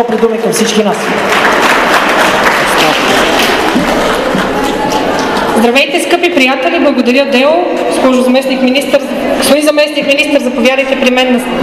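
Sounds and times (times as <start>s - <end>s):
speech: 0.0s - 2.1s, 5.6s - 11.6s
audience applause: 0.0s - 5.8s.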